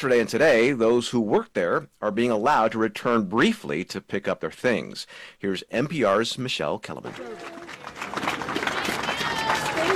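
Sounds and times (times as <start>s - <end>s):
speech: 0.0s - 7.6s
supporters cheering and clapping outside the Ronald Reagan building: 7.1s - 9.9s.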